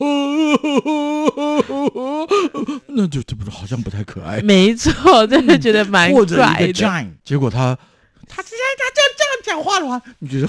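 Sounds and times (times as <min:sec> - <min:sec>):
voice imitating a baby's crying: 0:00.0 - 0:02.9
speech: 0:00.5 - 0:08.7, 0:09.5 - 0:10.4.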